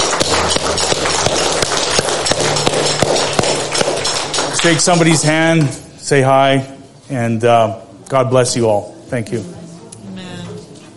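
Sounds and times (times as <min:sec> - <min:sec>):
audience clapping hands: 0:00.0 - 0:05.4
speech: 0:04.6 - 0:09.6.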